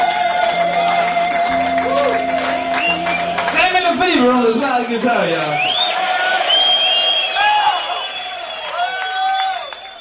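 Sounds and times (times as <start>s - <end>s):
live concert audience cheering in the United States: 0.0s - 9.9s
speech: 4.8s - 5.8s
concert audience whoops and whistles: 5.6s - 9.9s.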